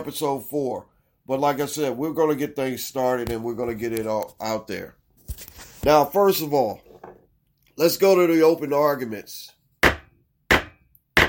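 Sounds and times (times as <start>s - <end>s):
speech: 0.0s - 6.8s, 7.8s - 9.6s
gavel banging: 9.8s - 11.2s.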